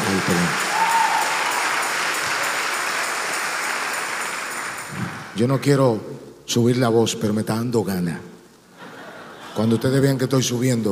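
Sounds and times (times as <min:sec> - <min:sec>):
audience applause: 0:00.0 - 0:05.3
speech: 0:00.2 - 0:00.8, 0:05.4 - 0:08.3, 0:09.6 - 0:10.9.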